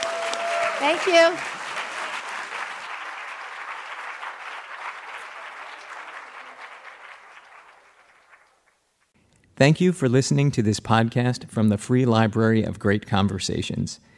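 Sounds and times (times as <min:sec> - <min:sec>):
crowd applauding: 0:00.0 - 0:08.8
speech: 0:00.8 - 0:01.5, 0:09.6 - 0:14.1.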